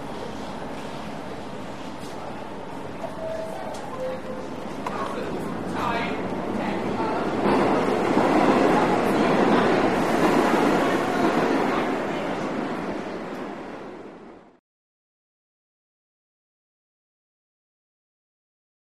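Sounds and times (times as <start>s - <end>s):
people boarding and exiting subway train: 0.0s - 14.6s.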